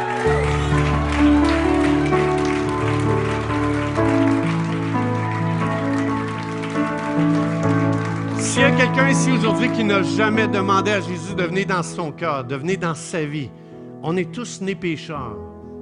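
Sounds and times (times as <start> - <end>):
audience clapping: 0.0 - 11.1
sustained keyboard chords: 0.0 - 15.8
speech: 8.9 - 15.5.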